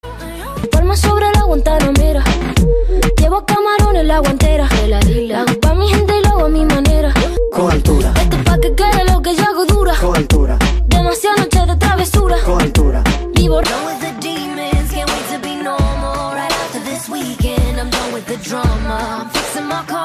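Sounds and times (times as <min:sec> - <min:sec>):
cool Hollywood ringtone: 0:00.0 - 0:20.0.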